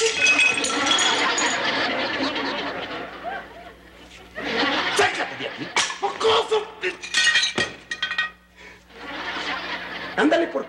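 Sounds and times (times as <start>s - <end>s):
small plate smashing: 0.0s - 1.6s, 5.8s - 8.4s
laughter: 0.0s - 6.8s, 8.8s - 10.6s
speech: 10.2s - 10.6s.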